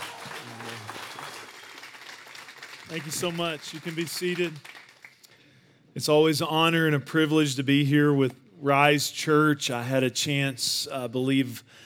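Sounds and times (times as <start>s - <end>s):
raised voice cheering: 0.0s - 1.4s
church congregation clapping and cheering to welcome their pastor: 0.0s - 5.3s
speech: 2.9s - 4.8s, 6.0s - 11.8s.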